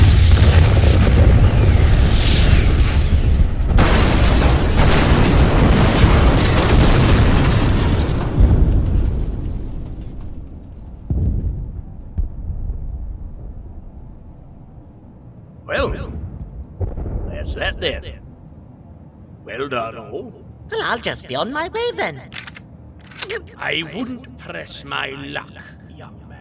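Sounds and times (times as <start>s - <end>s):
explosion in an audio drama: 0.0s - 14.5s, 15.7s - 18.2s
speech: 17.8s - 18.1s, 19.7s - 22.5s, 23.3s - 26.2s.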